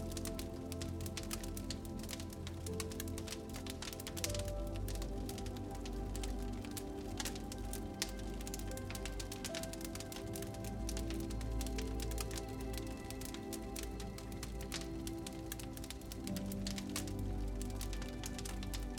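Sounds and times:
fire crackling: 0.0s - 18.9s.

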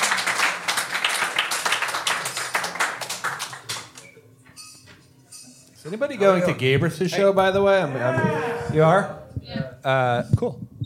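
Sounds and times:
audience applause: 0.0s - 4.0s
speech: 5.9s - 9.2s, 9.8s - 10.6s.

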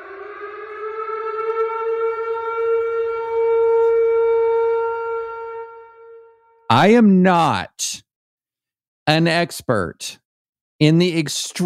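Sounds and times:
siren wailing as a warning signal: 0.0s - 6.7s
speech: 6.7s - 8.1s, 9.1s - 10.2s, 10.8s - 11.6s.

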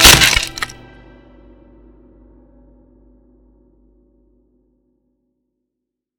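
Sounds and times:
sickly gray wooden staff splintering apart: 0.0s - 0.8s.

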